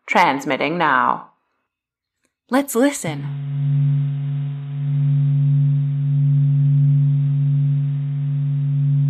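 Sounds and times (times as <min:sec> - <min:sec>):
speech: 0:00.1 - 0:01.3, 0:02.5 - 0:03.8
electromagnetic waves from space converted to sound: 0:03.3 - 0:09.0.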